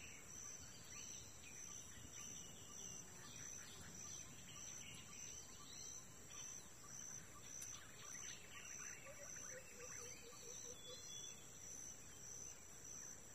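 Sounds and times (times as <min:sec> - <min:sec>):
forest path ambience in early morning in Kuma Apoti Togo: 0:00.0 - 0:13.3.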